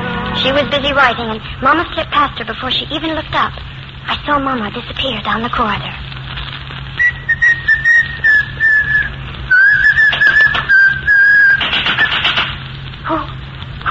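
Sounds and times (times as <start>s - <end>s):
speech: 0.4s - 6.2s
person whistling a tune: 7.0s - 12.2s.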